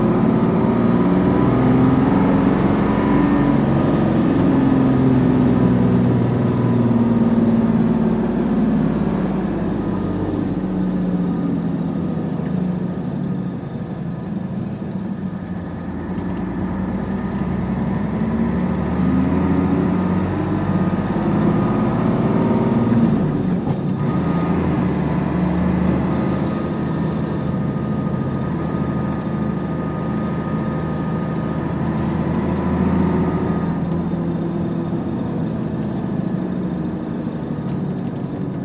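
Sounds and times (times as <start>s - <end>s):
vehicle interior driving noise: 0.0s - 38.6s.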